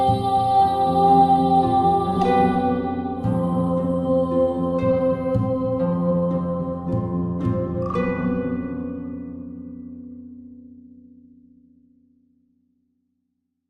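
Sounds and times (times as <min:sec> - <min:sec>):
mystical music: 0:00.0 - 0:10.6.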